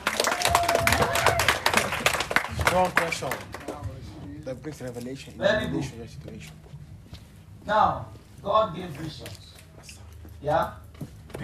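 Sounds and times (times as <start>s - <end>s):
group clapping hands: 0.0s - 4.1s
speech: 2.8s - 3.5s, 4.5s - 6.6s, 7.6s - 9.4s, 10.4s - 10.8s.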